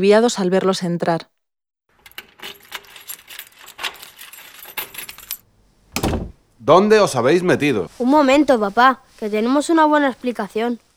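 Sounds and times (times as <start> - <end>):
speech: 0.0 - 1.4, 6.6 - 10.8
key entering a door lock: 4.8 - 6.4.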